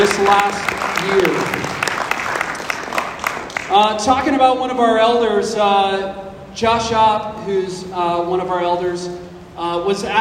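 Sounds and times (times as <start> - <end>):
audience round of applause: 0.0 - 3.8
speech: 0.2 - 1.9, 3.7 - 10.1.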